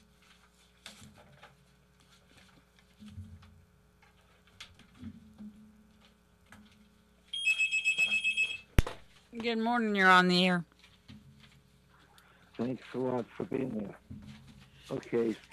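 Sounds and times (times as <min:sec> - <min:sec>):
telephone ringing: 0:07.3 - 0:08.7
speech: 0:09.4 - 0:10.7, 0:12.6 - 0:14.3, 0:14.9 - 0:15.5.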